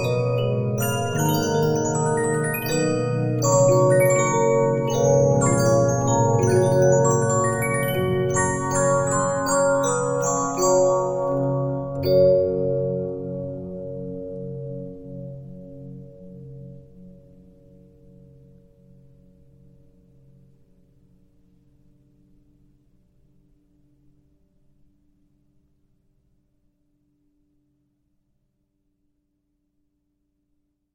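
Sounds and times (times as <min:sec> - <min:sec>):
Regina 15-inch disc music box: 0:00.0 - 0:13.6.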